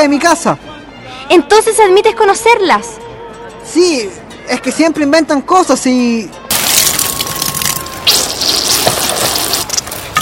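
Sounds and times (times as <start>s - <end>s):
speech: 0.0s - 0.7s, 1.3s - 3.0s, 3.7s - 6.4s
punch spilling from a tipped glass onto a suit: 6.5s - 10.2s.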